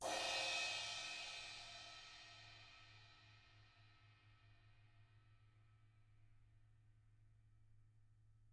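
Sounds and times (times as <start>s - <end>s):
drums with brushes: 0.0s - 2.7s.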